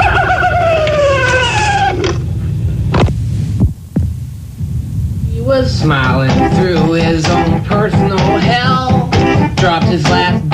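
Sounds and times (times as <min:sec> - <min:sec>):
coyote howling: 0:00.0 - 0:02.5
low hum: 0:00.0 - 0:09.8
speech: 0:05.8 - 0:08.0.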